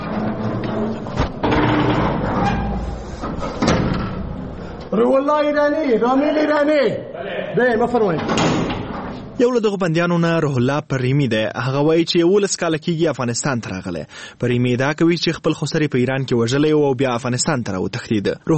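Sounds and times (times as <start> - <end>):
iron prison door at Herat prison opened by a guard: 0.0 - 4.6, 8.0 - 9.4
metallic knocks and scraping of the iron door: 0.0 - 4.7, 8.0 - 9.4
speech: 5.0 - 8.5, 9.4 - 18.5.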